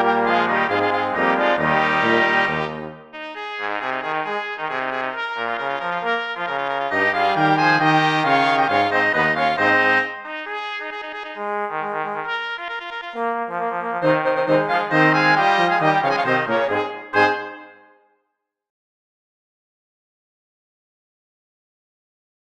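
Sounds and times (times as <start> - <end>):
polka music: 0.0 - 17.9.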